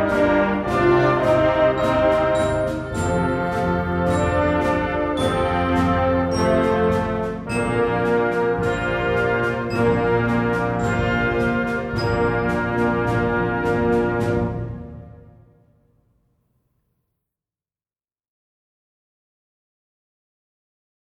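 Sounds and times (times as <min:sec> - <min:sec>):
classical canon: 0:00.0 - 0:15.5.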